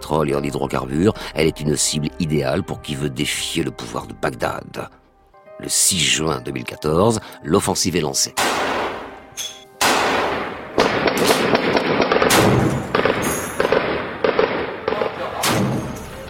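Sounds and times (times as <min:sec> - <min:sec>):
speech: 0:00.1 - 0:05.0, 0:05.6 - 0:08.8
explosions: 0:09.8 - 0:16.0
machine gun bursts: 0:10.8 - 0:15.1.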